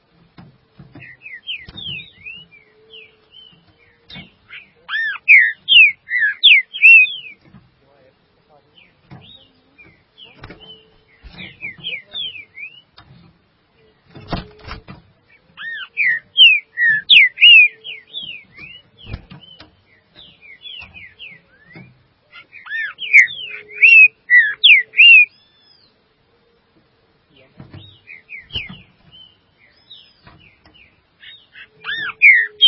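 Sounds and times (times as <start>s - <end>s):
green-winged saltator singing: 1.0s - 7.4s, 10.2s - 12.9s, 15.6s - 19.7s, 20.4s - 25.9s, 27.8s - 28.9s, 31.2s - 32.6s.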